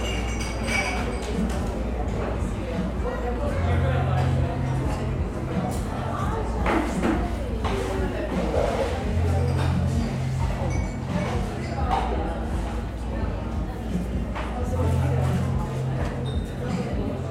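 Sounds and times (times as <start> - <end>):
cups and dishes clinking: 0.0 - 2.2, 6.6 - 12.2, 16.0 - 17.0
busy coffee shop chatter: 0.0 - 17.3.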